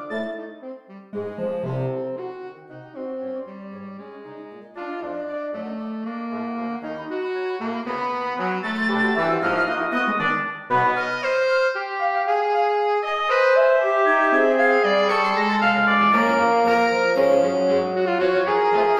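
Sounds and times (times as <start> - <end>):
saxophone band playing: 0.0 - 18.9.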